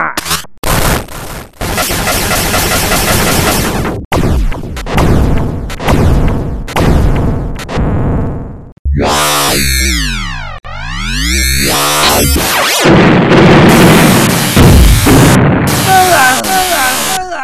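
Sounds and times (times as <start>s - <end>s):
video game laser fire: 0.6s - 17.2s.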